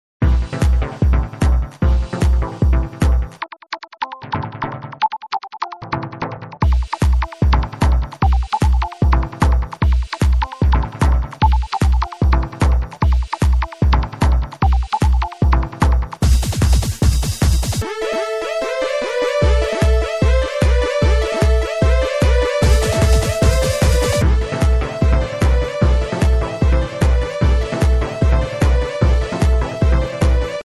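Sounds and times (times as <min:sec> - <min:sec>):
short techno music: 0:00.2 - 0:06.0, 0:06.6 - 0:30.6.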